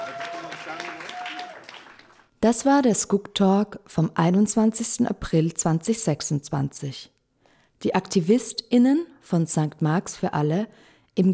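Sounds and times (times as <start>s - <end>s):
audience applause: 0.0s - 2.3s
speech: 2.4s - 7.2s, 7.8s - 11.3s.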